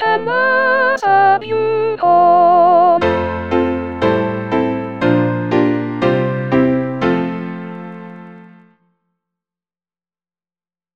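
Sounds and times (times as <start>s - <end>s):
soprano singing: 0.0s - 8.5s.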